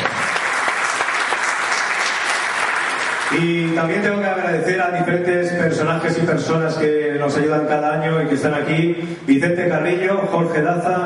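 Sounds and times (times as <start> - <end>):
audience applause: 0.0 - 3.8
speech: 3.3 - 11.0.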